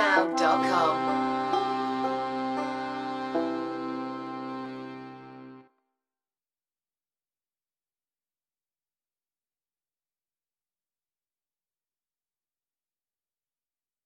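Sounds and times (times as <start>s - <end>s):
banjo: 0.0s - 5.6s
accordion: 0.0s - 5.7s
concertina: 0.0s - 5.7s.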